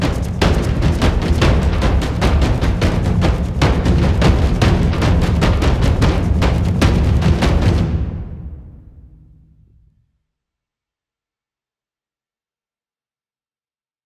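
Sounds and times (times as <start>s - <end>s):
tribal music: 0.0s - 9.9s.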